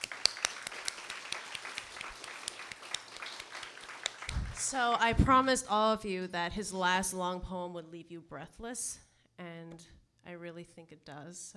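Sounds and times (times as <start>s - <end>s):
audience applause: 0.0s - 4.8s
speech: 4.7s - 11.5s.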